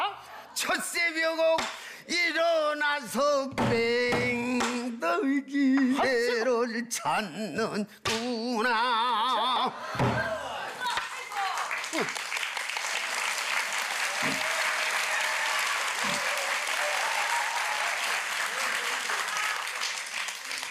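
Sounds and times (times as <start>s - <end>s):
speech: 0.1s - 4.0s, 5.1s - 10.3s
audience applause: 10.6s - 20.6s.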